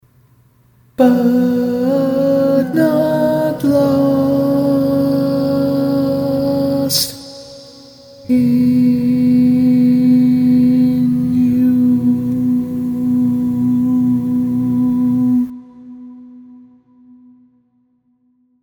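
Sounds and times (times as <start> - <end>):
barbershop tags singing: 1.0 - 15.5.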